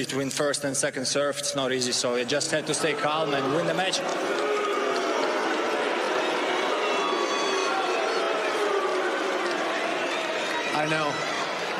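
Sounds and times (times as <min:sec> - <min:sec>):
speech: 0:00.0 - 0:04.4, 0:10.8 - 0:11.7
crowd chanting: 0:02.7 - 0:11.7.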